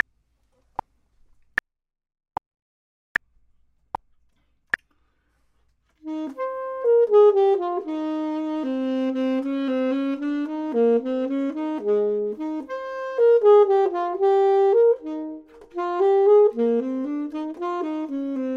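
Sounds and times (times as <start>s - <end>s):
clarinet: 6.0s - 18.5s
saxophone: 6.0s - 18.5s.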